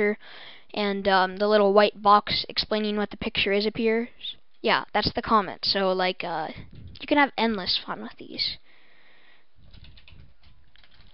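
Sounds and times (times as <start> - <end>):
speech: 0.0 - 8.6
typing a message on a computer keyboard: 9.6 - 11.1.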